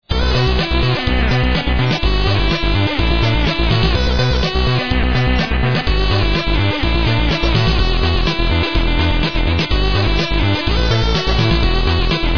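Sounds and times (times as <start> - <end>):
song: 0.1 - 12.3.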